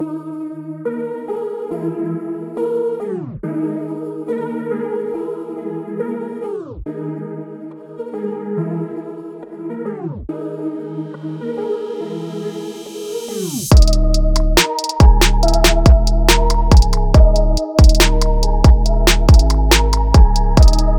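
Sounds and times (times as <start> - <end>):
music beat: 11.2 - 20.9.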